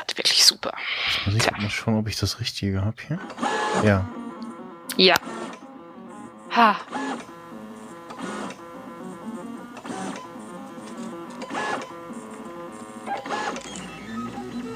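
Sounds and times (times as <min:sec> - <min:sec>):
speech: 0:00.2 - 0:04.2, 0:05.0 - 0:05.4, 0:06.6 - 0:07.1
3D printer stepper motors whirring while printing circles: 0:03.2 - 0:14.7.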